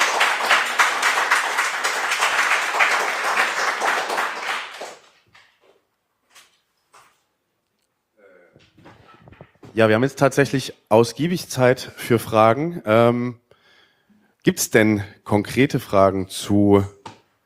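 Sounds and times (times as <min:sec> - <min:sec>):
audience applause: 0:00.0 - 0:05.2
speech: 0:09.8 - 0:13.4, 0:14.4 - 0:17.0.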